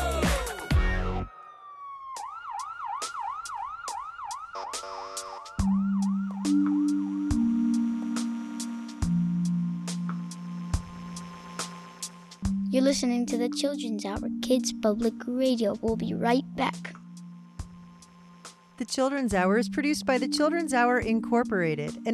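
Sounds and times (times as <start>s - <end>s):
fire truck siren: 0.9s - 12.0s
speech: 12.8s - 17.0s, 18.8s - 22.1s.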